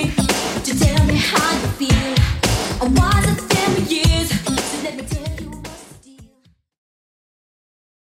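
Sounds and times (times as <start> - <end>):
80s drum beat: 0.0 - 5.8.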